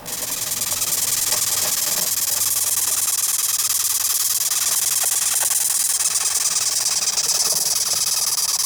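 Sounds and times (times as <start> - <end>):
velvet ant stridulating: 0.1 - 8.6.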